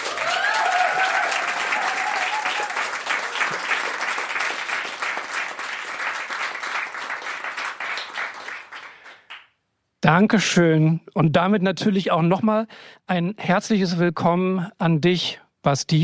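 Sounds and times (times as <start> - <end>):
audience applause at a live podcast recording in Bikini Berlin: 0.0 - 9.4
speech: 10.2 - 16.0.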